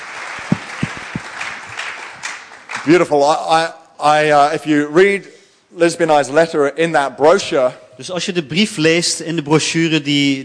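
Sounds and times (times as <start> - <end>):
audience applause: 0.0 - 3.0
speech: 2.8 - 10.4.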